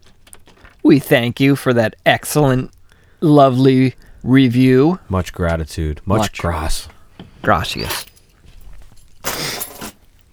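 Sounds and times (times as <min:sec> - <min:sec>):
set of keys tossed off a table: 0:00.0 - 0:00.9, 0:06.2 - 0:10.3
speech: 0:00.9 - 0:08.1.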